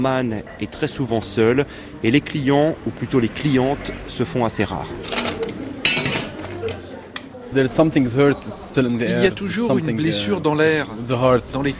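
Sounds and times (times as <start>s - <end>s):
speech: 0.0s - 5.2s, 7.5s - 11.7s
dishes and cutlery clinking in a hotel bar: 5.0s - 7.3s.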